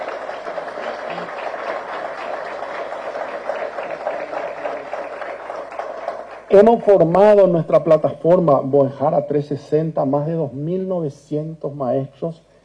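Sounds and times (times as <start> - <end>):
audience applause: 0.0 - 7.1
speech: 6.5 - 12.5.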